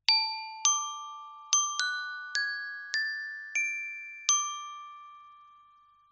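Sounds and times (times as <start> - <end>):
chimes: 0.1 - 6.0.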